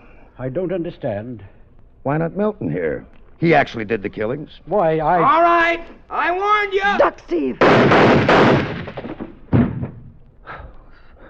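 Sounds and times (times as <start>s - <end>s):
speech: 0.4s - 8.7s
gunshots: 7.6s - 10.1s.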